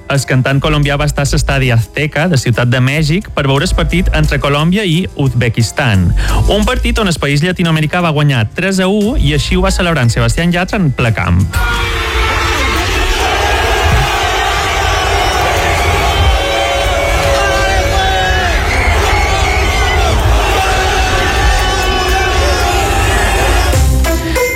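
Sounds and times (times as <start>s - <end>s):
speech: 0.1s - 12.0s
men shouting and whooping: 11.6s - 23.9s
stadium crowd cheering: 11.6s - 24.0s.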